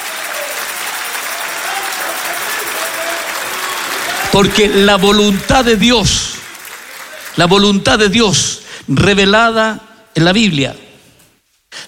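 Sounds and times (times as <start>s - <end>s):
audience applause: 0.0s - 7.7s
speech: 4.4s - 6.3s, 7.4s - 10.8s.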